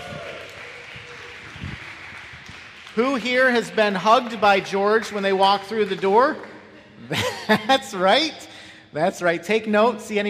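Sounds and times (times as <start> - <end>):
audience applause: 0.0 - 6.7
speech: 3.0 - 6.5, 7.1 - 10.2
laughter: 6.2 - 8.4.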